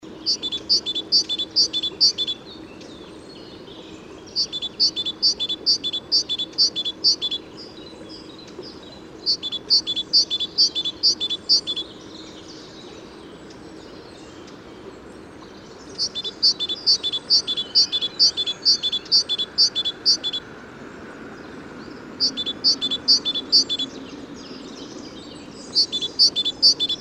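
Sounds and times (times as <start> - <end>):
great tit calling: 0.2 - 2.4, 4.3 - 7.4, 9.2 - 11.9, 15.9 - 20.4, 22.2 - 24.0, 25.5 - 26.9.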